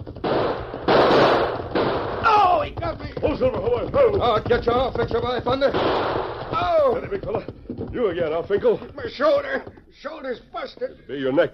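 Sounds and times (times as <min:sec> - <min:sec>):
gunshots: 0:00.0 - 0:02.8, 0:05.5 - 0:07.2
speech: 0:03.4 - 0:11.5.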